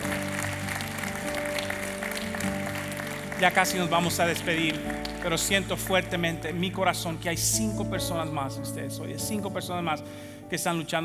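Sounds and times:
audience applause: 0:00.0 - 0:06.3
speech: 0:03.4 - 0:11.0.

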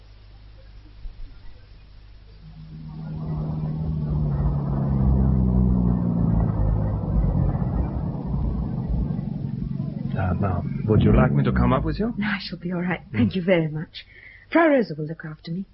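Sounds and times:
car engine pulling up and idling: 0:02.4 - 0:13.8
speech: 0:10.4 - 0:15.7.

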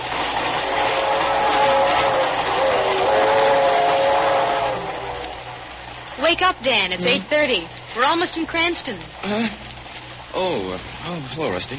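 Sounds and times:
train travelling toward Cranston in upper New York State: 0:00.0 - 0:09.0
speech: 0:06.4 - 0:09.7, 0:10.3 - 0:11.7.

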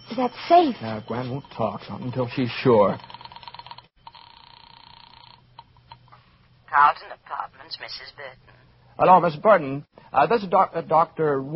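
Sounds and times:
telephone ringing tone down a phone line: 0:00.0 - 0:06.0
steady buzzing phone line with blips: 0:00.0 - 0:06.2
speech: 0:00.2 - 0:03.1, 0:07.7 - 0:11.5.

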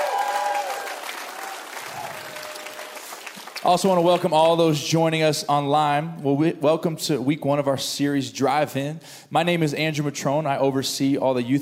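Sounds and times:
church congregation applauding and cheering: 0:00.0 - 0:04.7
speech: 0:03.6 - 0:11.6.

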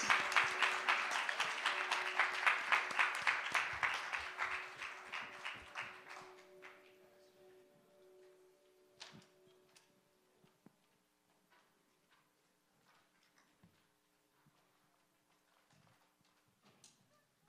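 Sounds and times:
audience applause for children: 0:00.0 - 0:07.1.

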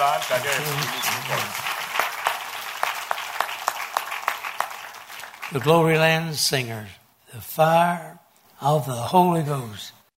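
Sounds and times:
speech: 0:00.0 - 0:01.7, 0:05.5 - 0:10.0
audience clapping hands: 0:00.0 - 0:05.6.

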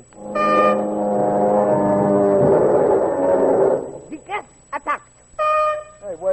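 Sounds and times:
bugle call: 0:00.2 - 0:03.9, 0:05.4 - 0:06.2.

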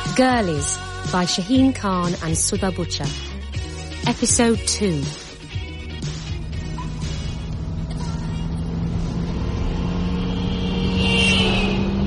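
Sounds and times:
speech: 0:00.2 - 0:03.3, 0:04.0 - 0:05.2
Ferrari engine driven fast: 0:05.3 - 0:12.0.

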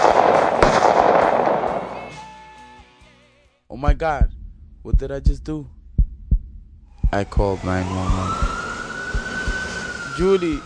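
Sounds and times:
gunshots from a gun: 0:00.0 - 0:02.3
speech: 0:03.8 - 0:05.8, 0:07.1 - 0:08.5, 0:10.2 - 0:10.6.

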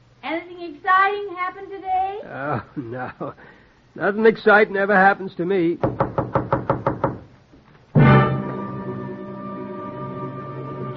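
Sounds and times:
speech: 0:00.3 - 0:06.0
knocking on a front door: 0:05.8 - 0:07.3.

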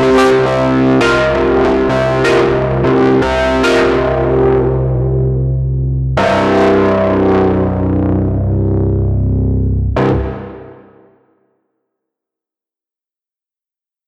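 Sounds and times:
distorted piano: 0:00.0 - 0:11.2.

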